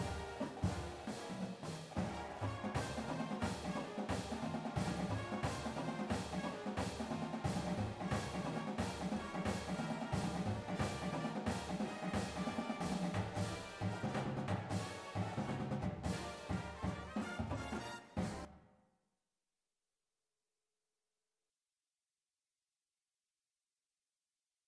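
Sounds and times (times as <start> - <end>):
full drumline: 0.0 - 18.5
music: 0.0 - 18.9.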